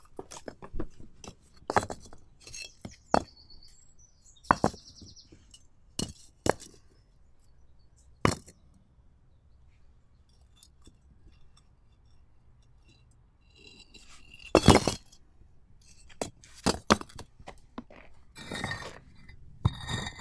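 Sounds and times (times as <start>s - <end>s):
bricks and stones tumbling in a rockslide: 0.0s - 3.5s, 4.4s - 5.2s, 14.3s - 15.1s, 16.1s - 20.2s.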